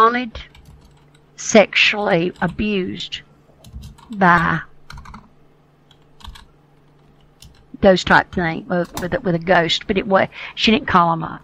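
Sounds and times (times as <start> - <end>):
speech: 0.0 - 0.5, 1.4 - 3.3, 4.1 - 4.7, 7.8 - 11.4
computer keyboard typing: 0.4 - 1.3, 2.1 - 2.9, 3.6 - 5.3, 5.9 - 9.2.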